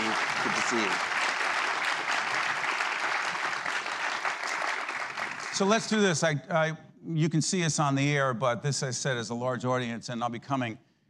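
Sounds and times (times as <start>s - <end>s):
studio audience applause greeting a university president: 0.0s - 6.2s
speech: 0.5s - 1.1s, 5.6s - 10.9s.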